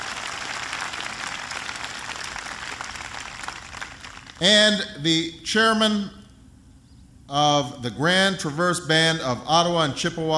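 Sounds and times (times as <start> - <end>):
audience applause: 0.0 - 4.4
speech: 4.4 - 6.2, 7.3 - 10.3.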